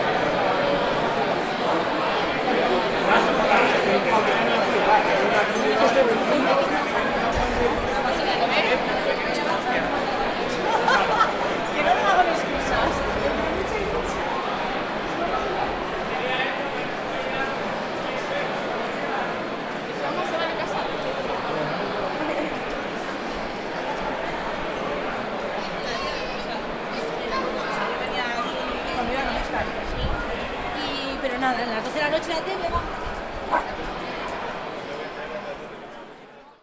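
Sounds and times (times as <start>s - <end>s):
street ambient noise on Calle Somera in Bilbao: 0.0s - 36.6s
laughter: 10.0s - 13.4s, 21.7s - 22.8s.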